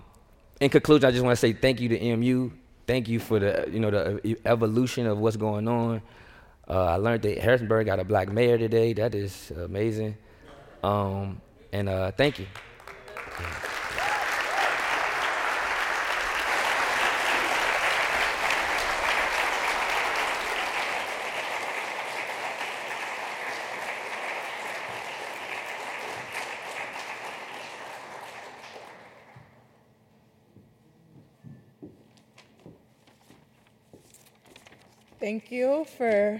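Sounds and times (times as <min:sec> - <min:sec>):
speech: 0:00.6 - 0:12.7, 0:35.3 - 0:36.3
audience applause after a speech: 0:12.6 - 0:29.5.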